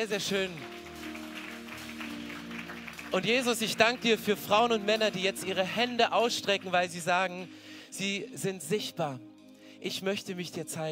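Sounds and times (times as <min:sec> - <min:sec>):
speech: 0:00.0 - 0:00.8, 0:03.1 - 0:10.9
audience applause: 0:00.4 - 0:04.7.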